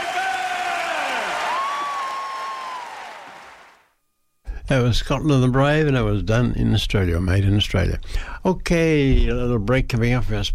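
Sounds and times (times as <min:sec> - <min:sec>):
audience applause after a musical performance: 0:00.0 - 0:03.9
speech: 0:04.7 - 0:10.5.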